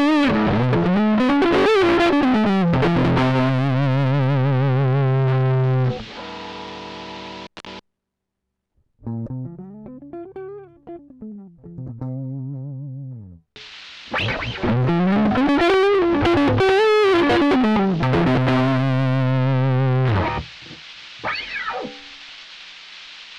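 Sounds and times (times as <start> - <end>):
guitar in dropped D tuning with various bridge pickup settings: 0.0 - 6.6, 9.0 - 13.4, 14.1 - 20.6.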